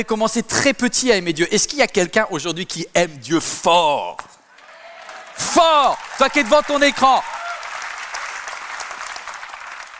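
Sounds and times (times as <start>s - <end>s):
speech: 0.0s - 4.3s, 5.4s - 7.3s
audience applause: 4.5s - 9.9s.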